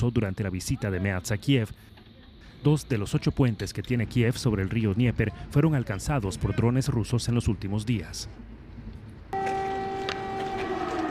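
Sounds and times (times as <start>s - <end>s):
speech: 0.0s - 2.0s, 2.6s - 8.5s
air-raid siren: 9.3s - 11.0s.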